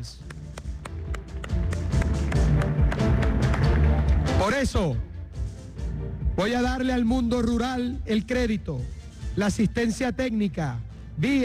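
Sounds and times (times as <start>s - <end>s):
speech: 0.0s - 0.3s, 4.4s - 5.1s, 6.4s - 11.4s
audience applause: 0.5s - 4.4s.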